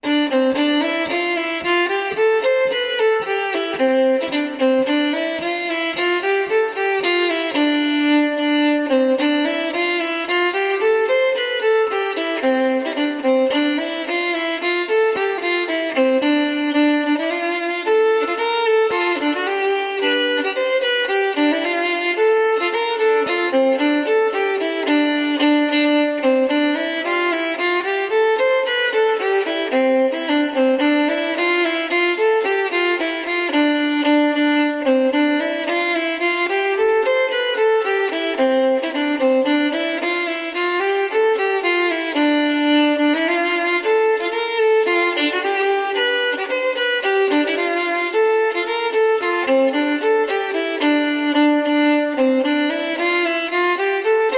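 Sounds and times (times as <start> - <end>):
fiddle: 0.0 - 54.3.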